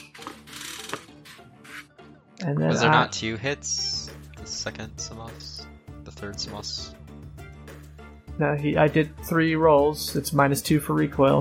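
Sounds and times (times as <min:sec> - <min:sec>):
shuffling a deck of cards: 0:00.0 - 0:01.9
speech: 0:02.4 - 0:03.9, 0:04.6 - 0:07.0, 0:08.4 - 0:11.3.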